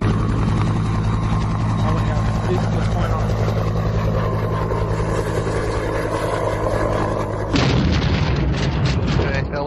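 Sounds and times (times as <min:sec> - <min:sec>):
rescue helicopter engine hum: 0:00.0 - 0:09.6
rescue helicopter crashing: 0:07.5 - 0:09.5.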